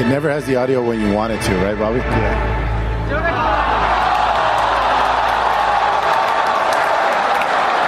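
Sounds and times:
speech: 0.1 - 3.6
crowd clapping in played video: 3.3 - 7.8.

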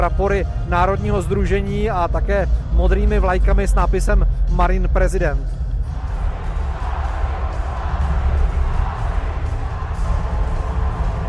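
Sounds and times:
speech: 0.0 - 5.6
large rally crowd chanting and cheering: 5.6 - 11.2.

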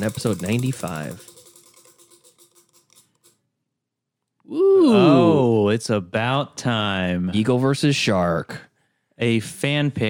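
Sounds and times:
speech: 0.0 - 1.3, 4.5 - 10.0
spinning prize wheel ticking: 0.0 - 3.4.

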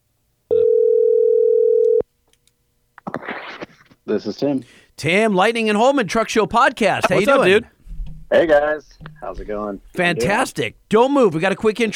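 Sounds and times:
telephone dial tone while calling: 0.5 - 2.0
speech: 4.1 - 7.7, 8.3 - 11.9.

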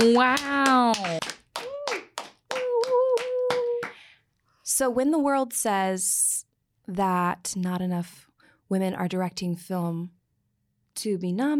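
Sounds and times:
speech: 0.0 - 1.2, 4.8 - 10.2, 11.0 - 11.5
audience applause: 0.0 - 4.0.

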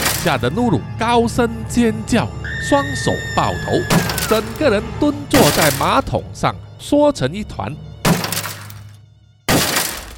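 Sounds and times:
speech: 0.2 - 7.9
bathroom door being smashed and splitting: 3.9 - 4.6, 5.4 - 6.0, 8.1 - 8.8, 9.5 - 10.1.

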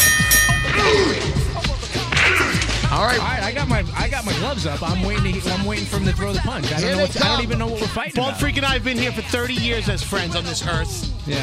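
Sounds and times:
boxing bell ding: 0.0 - 1.6
murmuring voices: 0.6 - 11.4
speech: 3.1 - 11.4.

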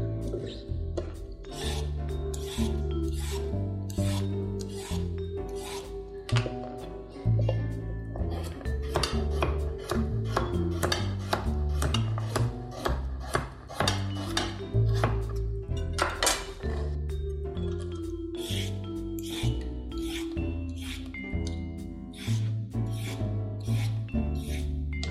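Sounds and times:
music playing: 0.0 - 12.8, 13.8 - 25.0
knife chopping carrots and parsnips: 1.0 - 6.7, 8.2 - 15.3, 18.4 - 21.1, 22.2 - 25.0.

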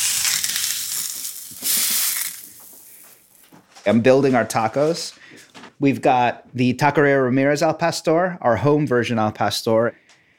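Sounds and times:
wet tortilla sizzling on hot surface: 0.0 - 3.4
speech: 3.9 - 10.0.

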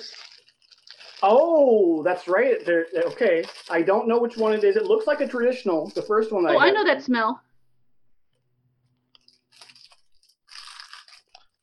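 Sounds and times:
person biting and chewing a chocolate snack cake: 0.0 - 1.4, 9.1 - 11.6
speech: 1.2 - 7.5.

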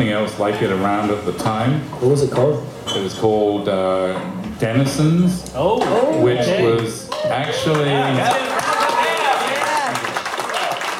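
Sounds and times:
speech: 0.1 - 8.5
audience clapping: 6.6 - 10.9.

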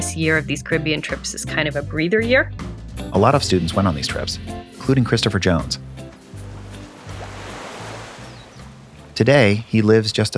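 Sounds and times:
speech: 0.2 - 6.0, 9.2 - 10.3
ocean waves crashing on a beach: 6.1 - 9.6.

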